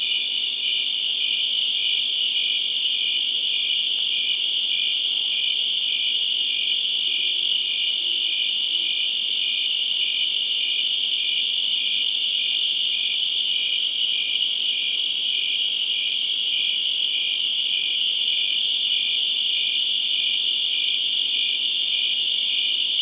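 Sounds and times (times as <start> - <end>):
crickets chirping: 0.0 - 23.0.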